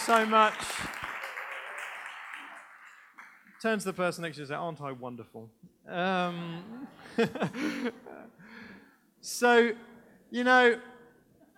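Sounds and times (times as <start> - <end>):
audience applauding: 0.0 - 4.0
speech: 0.1 - 0.9, 3.6 - 8.4, 9.2 - 10.9
laughter: 6.8 - 8.4.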